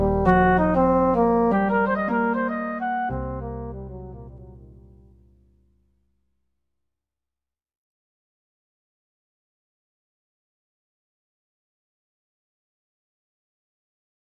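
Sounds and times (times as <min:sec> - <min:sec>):
eleven-limit pentatonic tones: 0:00.0 - 0:05.2.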